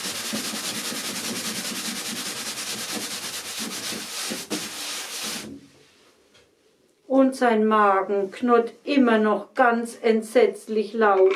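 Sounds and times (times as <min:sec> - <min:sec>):
wiping the floor: 0:00.0 - 0:06.2
sweeping the floor: 0:01.8 - 0:06.2
speech: 0:07.2 - 0:11.3.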